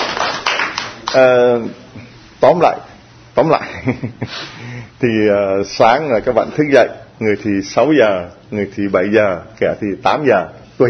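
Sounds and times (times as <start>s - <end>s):
audience applause: 0.0s - 1.2s
speech: 1.1s - 10.8s.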